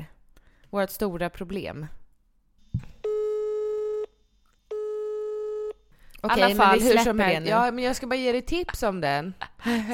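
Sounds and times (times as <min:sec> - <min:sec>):
speech: 0:00.7 - 0:02.0, 0:06.2 - 0:09.9
telephone ringing tone of an outgoing call: 0:03.0 - 0:05.8.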